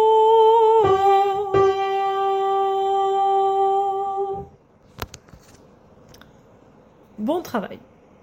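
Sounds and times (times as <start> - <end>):
soprano singing: 0.0 - 4.6.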